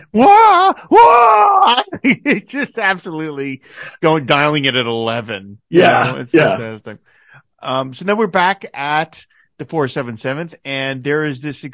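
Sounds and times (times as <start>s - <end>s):
man's scream of pain: 0.0s - 2.0s, 5.8s - 6.6s
speech: 0.0s - 11.7s.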